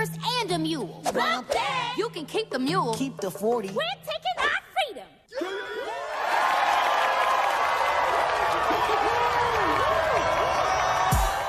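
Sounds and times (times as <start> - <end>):
speech: 0.0 - 4.3
audience applauding at a school performance: 6.0 - 11.4.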